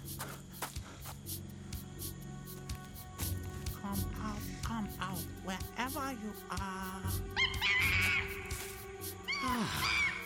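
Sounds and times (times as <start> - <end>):
speech: 3.9 - 8.0, 9.4 - 10.0
monkey shrieking and chattering: 7.3 - 10.2.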